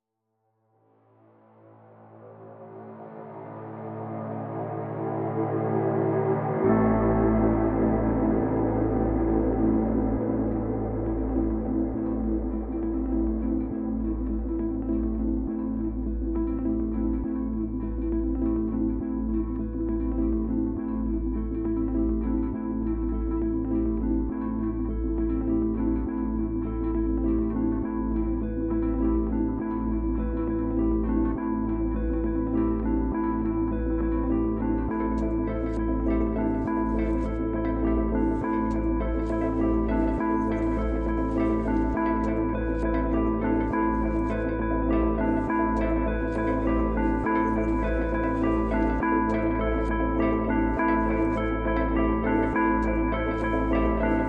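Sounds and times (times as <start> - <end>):
minimal electronic music: 1.4 - 54.2.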